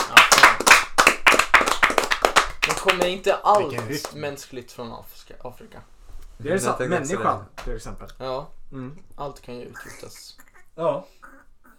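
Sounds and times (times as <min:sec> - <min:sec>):
hands clapping applause: 0:00.0 - 0:04.2
speech: 0:02.8 - 0:11.4.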